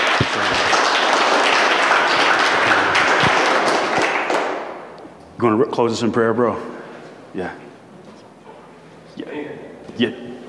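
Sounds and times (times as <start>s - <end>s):
round of applause: 0.0s - 5.0s
speech: 5.4s - 7.6s, 10.0s - 10.3s.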